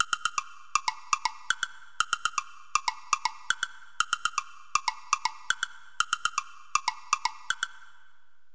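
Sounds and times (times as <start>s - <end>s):
woodblock: 0.0s - 8.1s.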